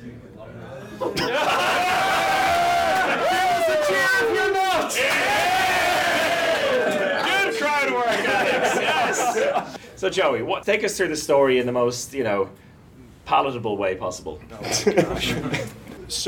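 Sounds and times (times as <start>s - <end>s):
laughter: 1.0s - 3.7s, 6.6s - 9.8s, 14.6s - 16.1s
live audience cheering and whooping: 1.4s - 9.8s
speech: 10.0s - 12.6s, 13.3s - 16.2s.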